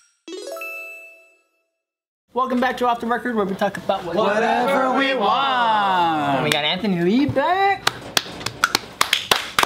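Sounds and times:
speech: 2.4 - 7.7
sharp forceful hand claps: 7.8 - 9.6.

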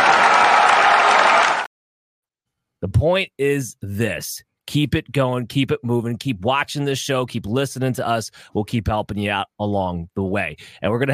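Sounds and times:
crowd applause sound effect: 0.0 - 1.7
speech: 2.8 - 11.1.

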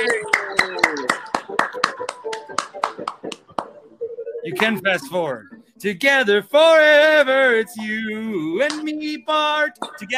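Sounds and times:
clapping: 0.0 - 3.7
speech: 4.5 - 10.1.

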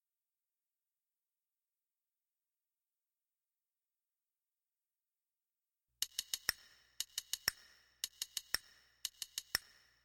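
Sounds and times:
clicking noise: 6.0 - 10.0.

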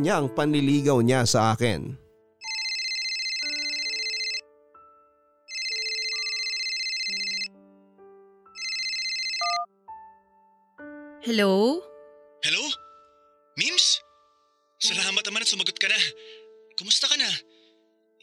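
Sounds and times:
speech: 0.0 - 2.0, 11.2 - 12.6, 13.6 - 13.8, 14.8 - 17.5
mobile phone ringtone for an incoming call: 2.4 - 4.5, 5.5 - 7.6, 8.6 - 9.7.

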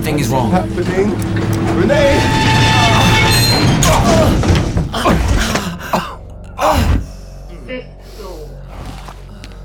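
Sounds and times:
elevator shaking to an abrupt halt: 0.0 - 5.8
speech: 0.1 - 2.5.

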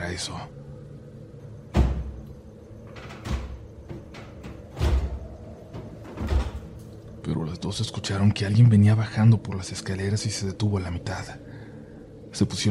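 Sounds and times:
speech: 0.1 - 0.7, 7.3 - 11.5, 12.4 - 12.7
door slamming shut in the distance: 1.7 - 6.8.

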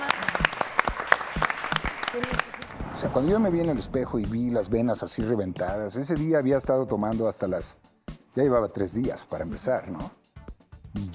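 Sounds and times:
studio audience applause: 0.0 - 2.8
speech: 3.0 - 10.2, 10.9 - 11.1.

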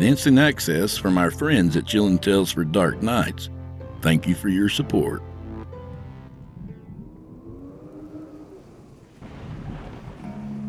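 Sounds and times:
speech: 0.0 - 5.3
rain: 7.5 - 10.6
deep rolling thunder: 8.8 - 10.6.

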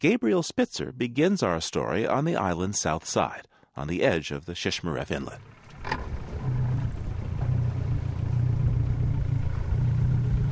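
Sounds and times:
speech: 0.0 - 6.0
outboard motor idling: 5.4 - 10.5.

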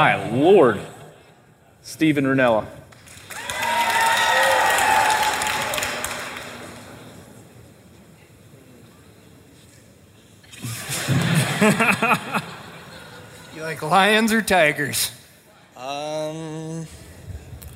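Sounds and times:
speech: 0.0 - 0.9, 1.8 - 2.8, 11.6 - 12.3, 13.6 - 15.2
audience cheering with whoops and shouts: 3.2 - 6.6
laughter: 10.5 - 13.9.

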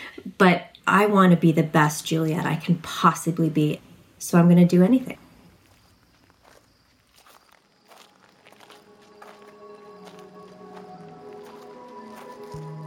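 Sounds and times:
speech: 0.2 - 5.2
footsteps on a gravel and stone walking ramp through woods at night: 5.4 - 12.8.

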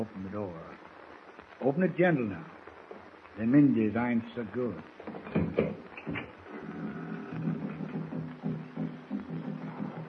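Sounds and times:
speech: 0.0 - 0.8, 1.6 - 2.6, 3.4 - 5.2
distant tom-tom drums: 4.9 - 10.0.

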